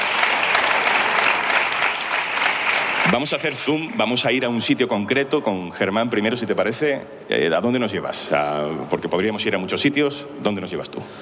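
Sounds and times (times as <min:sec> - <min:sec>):
applause for two hosts: 0:00.0 - 0:03.8
speech: 0:03.1 - 0:11.1.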